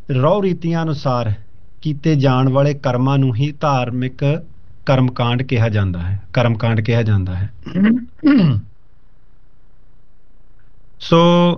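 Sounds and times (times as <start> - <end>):
speech: 0.1 - 8.7, 11.0 - 11.5
low-pitched throat-clearing cough: 7.6 - 8.7.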